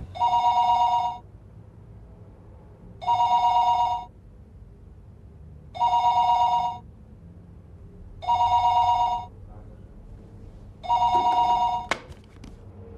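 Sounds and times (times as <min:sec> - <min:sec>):
telephone ringing while calling home: 0:00.2 - 0:01.2, 0:03.0 - 0:04.1, 0:05.8 - 0:06.8, 0:08.2 - 0:09.3, 0:10.8 - 0:11.9.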